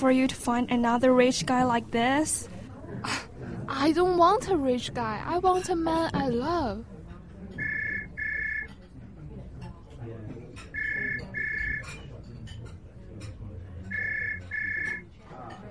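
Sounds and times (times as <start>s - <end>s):
speech: 0.0s - 6.9s
indistinct voices: 7.6s - 8.7s, 10.7s - 12.0s
phone ringing with electronic trill: 7.6s - 8.8s, 10.8s - 12.0s, 13.9s - 15.1s.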